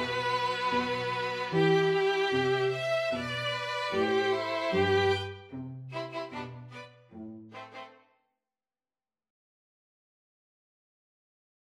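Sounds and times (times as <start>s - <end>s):
string quartet: 0.0s - 8.0s.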